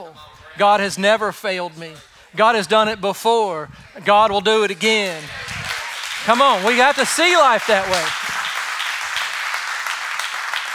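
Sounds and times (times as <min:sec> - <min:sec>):
speech: 0:00.0 - 0:05.4, 0:06.2 - 0:08.2
audience clapping: 0:04.7 - 0:10.7.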